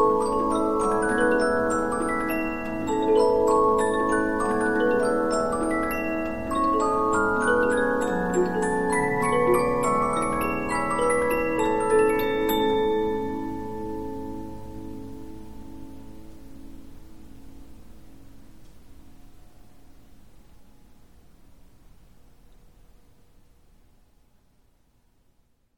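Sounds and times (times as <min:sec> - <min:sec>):
15-inch disc music box playing: 0:00.0 - 0:16.3.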